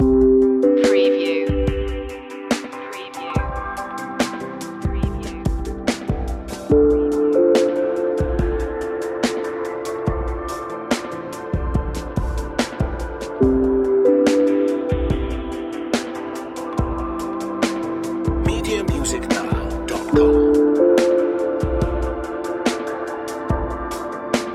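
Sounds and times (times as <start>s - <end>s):
music loop: 0.0s - 24.5s.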